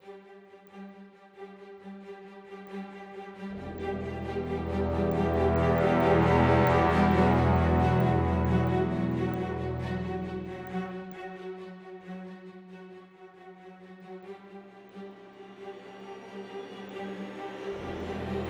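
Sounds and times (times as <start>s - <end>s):
epic 135 BPM cinematic trailer music: 3.6s - 11.2s.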